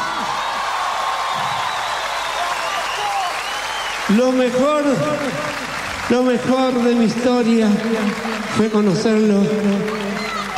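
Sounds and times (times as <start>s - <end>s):
audience applause and cheering: 0.0s - 10.5s
speech: 4.1s - 10.0s.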